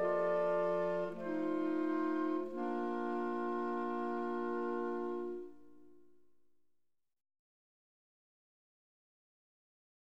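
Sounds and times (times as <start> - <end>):
clarinet quartet: 0.0 - 6.1.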